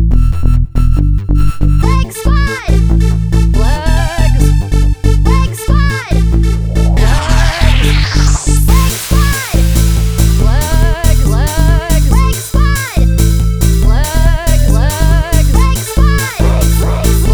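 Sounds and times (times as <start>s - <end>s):
techno music: 0.1s - 17.3s.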